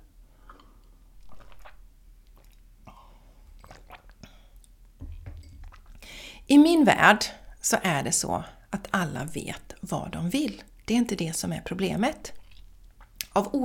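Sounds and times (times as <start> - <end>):
person drinking water: 0.3 - 6.4, 12.3 - 13.6
speech: 6.5 - 12.4, 13.4 - 13.6.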